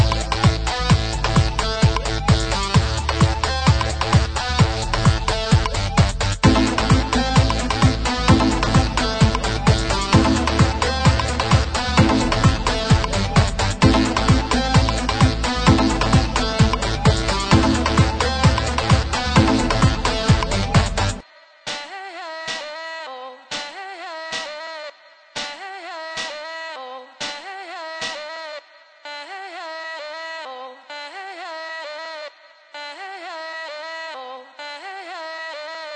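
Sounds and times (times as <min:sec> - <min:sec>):
trance music: 0:00.0 - 0:21.9.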